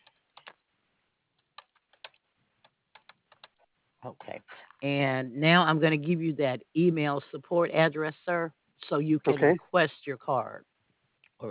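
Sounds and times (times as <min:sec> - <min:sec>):
typing on a computer keyboard: 0:01.6 - 0:02.2, 0:02.9 - 0:03.6
speech: 0:04.0 - 0:10.7.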